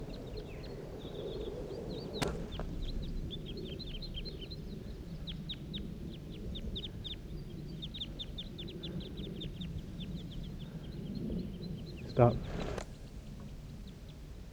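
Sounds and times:
bird flock taking off: 0.0s - 7.8s, 8.4s - 14.4s
speech: 12.2s - 12.6s.

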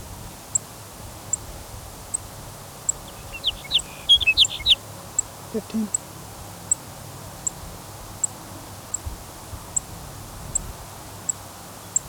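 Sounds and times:
low hiss: 0.4s - 12.0s
sage sparrow chipping, probably a female: 2.1s - 6.0s
speech: 5.6s - 6.0s.

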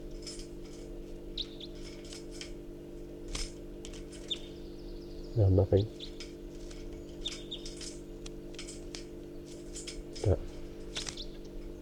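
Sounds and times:
low droning hum: 0.0s - 11.8s
wild birds chirping and tweeting: 1.2s - 2.1s, 3.8s - 11.8s
speech: 5.4s - 6.2s, 10.3s - 10.5s.

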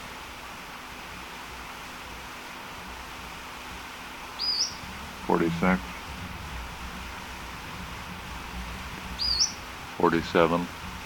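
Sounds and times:
faint steady hiss: 0.0s - 11.0s
bird call: 4.4s - 4.8s, 9.2s - 9.6s
speech: 5.3s - 5.9s, 10.0s - 10.8s.

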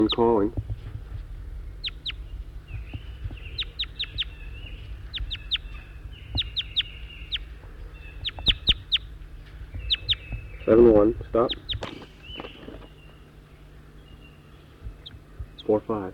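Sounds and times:
speech: 0.0s - 0.7s, 10.7s - 11.9s, 15.7s - 16.1s
birds chittering: 0.0s - 16.1s
low hum: 0.0s - 16.1s.

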